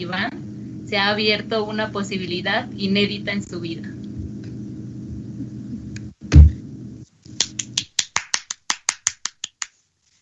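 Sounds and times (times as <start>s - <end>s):
speech: 0.0s - 4.0s
applause: 7.4s - 9.8s.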